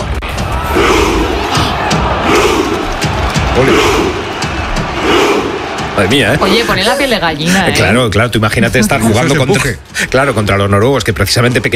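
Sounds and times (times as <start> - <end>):
fans chanting a rowing cheer: 0.4 - 8.0
speech: 3.6 - 4.0, 6.0 - 11.7.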